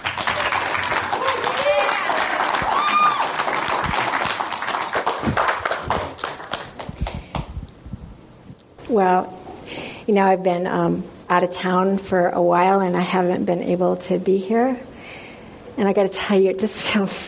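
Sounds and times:
audience round of applause: 0.0 - 7.2
speech: 8.9 - 9.3, 10.1 - 14.9, 15.8 - 17.2.

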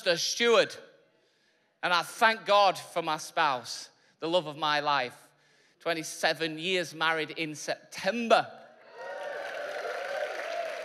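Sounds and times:
speech: 0.0 - 0.9, 1.8 - 5.2, 5.8 - 8.6
audience applause: 8.9 - 10.8
audience whooping and cheering: 8.9 - 10.8.

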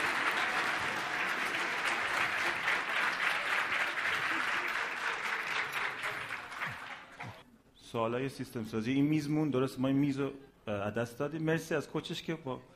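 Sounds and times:
audience applause: 0.0 - 7.4
speech: 7.9 - 12.7.

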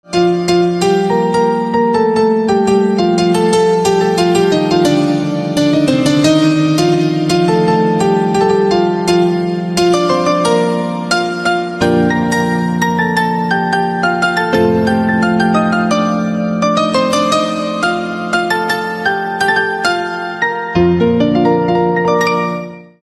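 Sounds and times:
instrumental piano ringtone: 0.1 - 23.0.

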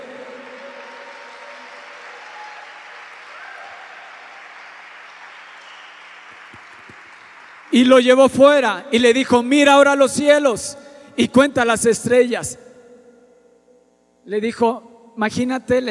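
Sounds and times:
audience applause: 0.0 - 8.2
speech: 7.7 - 12.6, 14.3 - 15.9.

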